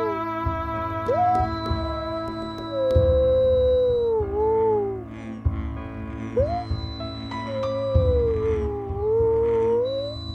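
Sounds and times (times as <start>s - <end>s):
wolf howls: 0.0s - 0.4s, 1.0s - 5.2s, 6.3s - 10.3s
sustained musical drones: 0.0s - 10.3s.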